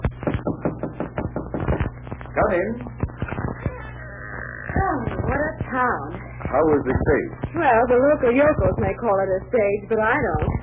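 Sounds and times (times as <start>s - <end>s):
knocking on a door: 0.2s - 1.7s
speech: 2.4s - 3.0s, 4.8s - 10.6s.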